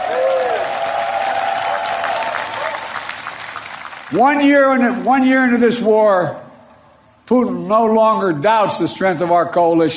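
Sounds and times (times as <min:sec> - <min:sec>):
audience applause: 0:00.0 - 0:04.2
speech: 0:04.1 - 0:06.4, 0:07.3 - 0:09.9.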